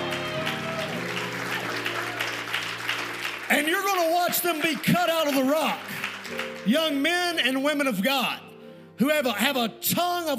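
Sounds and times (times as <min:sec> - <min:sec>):
audience hand clapping: 0:00.0 - 0:07.4
speech: 0:03.7 - 0:08.4, 0:09.0 - 0:10.3.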